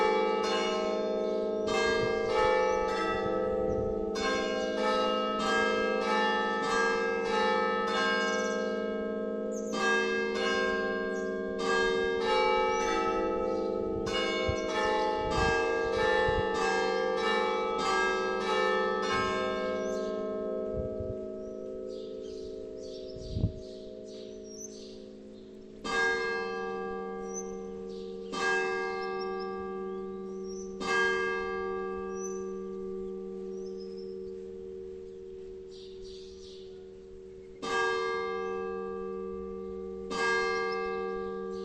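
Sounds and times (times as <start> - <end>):
village bell tower ringing the hours: 0.0 - 41.6
birds: 7.9 - 8.8, 9.5 - 15.2, 19.2 - 20.3, 21.4 - 26.1, 27.2 - 31.0, 32.0 - 41.6.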